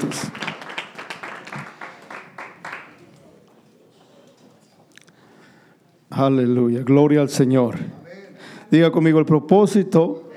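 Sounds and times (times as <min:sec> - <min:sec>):
applause: 0:00.0 - 0:03.2
speech: 0:06.1 - 0:08.0, 0:08.7 - 0:10.2.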